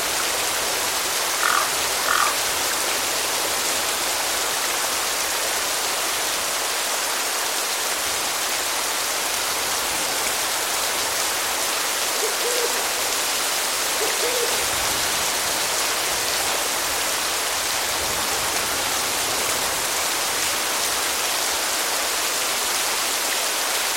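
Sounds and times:
gentle rain in a cemetery: 0.0s - 23.9s
faint owl hoots: 1.3s - 2.4s, 12.1s - 13.1s, 13.9s - 14.8s
crows calling: 1.3s - 2.5s.

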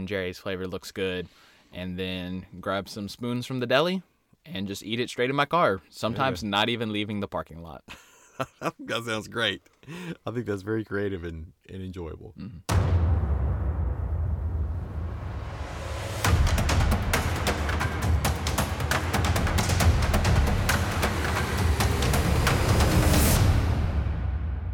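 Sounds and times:
speech: 0.0s - 13.0s
drum beat segment jingle: 12.7s - 14.2s, 14.8s - 24.4s.

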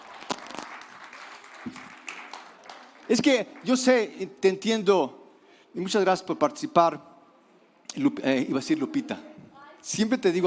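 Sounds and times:
audience applause: 0.0s - 4.0s
speech: 1.6s - 1.9s, 3.1s - 5.2s, 5.8s - 7.1s, 7.9s - 10.4s.

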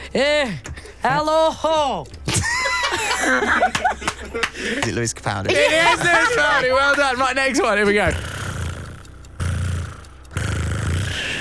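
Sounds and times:
laughter: 0.0s - 8.2s
speech: 0.1s - 2.2s, 3.0s - 8.4s
person imitating cat purring: 8.0s - 11.4s.

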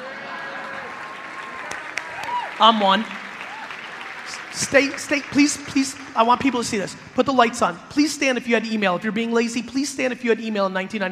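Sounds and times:
audience applause: 0.0s - 7.7s
speech: 2.6s - 3.2s, 4.6s - 11.1s.

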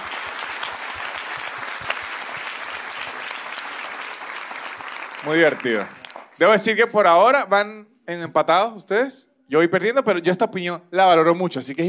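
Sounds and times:
audience applause: 0.0s - 6.4s
speech: 5.2s - 11.8s.

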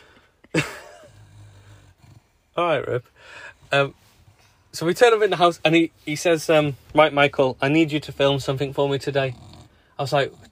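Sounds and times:
snoring: 1.0s - 2.6s, 9.0s - 10.5s
speech: 2.6s - 4.0s, 4.7s - 10.5s.

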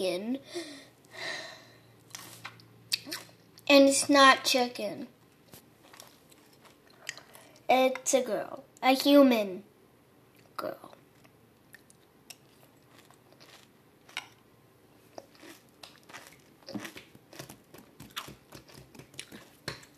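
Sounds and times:
speech: 0.0s - 1.3s, 3.7s - 5.2s, 7.7s - 9.7s, 10.6s - 10.9s
Special K crunchy cereal being chewed: 5.8s - 7.3s, 11.2s - 14.4s, 15.0s - 19.7s.

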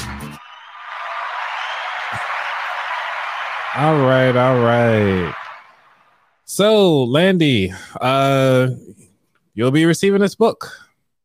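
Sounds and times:
round of applause: 0.0s - 6.3s
speech: 3.8s - 5.4s, 6.5s - 10.8s.

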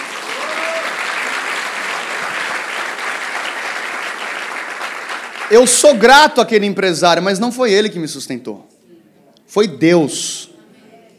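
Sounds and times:
audience applause: 0.0s - 6.0s
speech: 5.5s - 8.7s, 9.5s - 10.5s.

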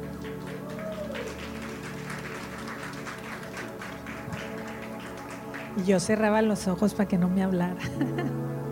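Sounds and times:
audience applause: 0.0s - 6.2s
speech: 5.8s - 8.6s
laughter: 7.8s - 8.4s.

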